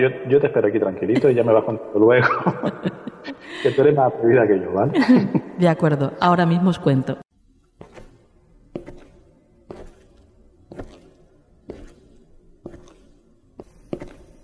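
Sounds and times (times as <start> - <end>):
speech: 0.0 - 7.2
laughter: 0.5 - 5.5
footsteps walking toward a door: 7.5 - 14.4.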